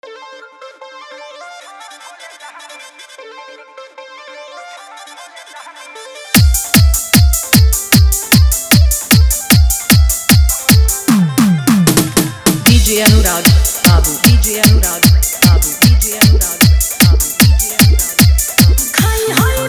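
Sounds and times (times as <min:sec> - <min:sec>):
Bolbam hard bass mix: 0:06.4 - 0:19.6.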